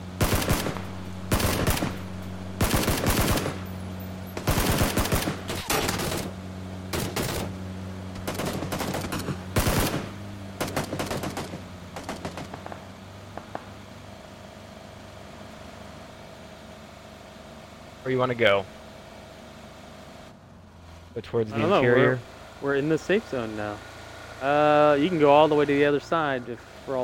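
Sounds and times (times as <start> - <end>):
automatic gunfire in a video game fired from a dune buggy: 0.2 - 3.6, 4.4 - 7.6, 8.2 - 12.8
speech: 18.1 - 18.8, 21.2 - 27.0.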